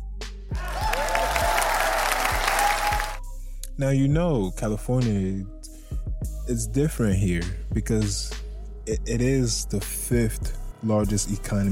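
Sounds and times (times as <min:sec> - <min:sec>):
cheers and whoops: 0:00.6 - 0:03.2
crowd applauding: 0:00.6 - 0:03.2
speech: 0:03.8 - 0:05.6, 0:06.5 - 0:11.7.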